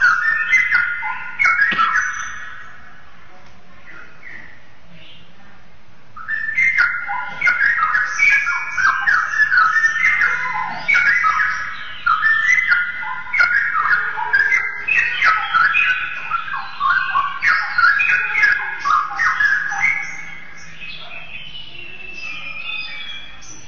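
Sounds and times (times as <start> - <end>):
Oriental magpie-robin singing: 0.0 - 3.1, 6.2 - 23.6.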